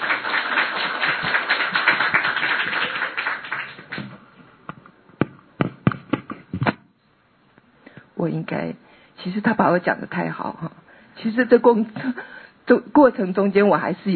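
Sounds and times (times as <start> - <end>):
audience applause: 0.0 - 4.2
speech: 8.2 - 14.1.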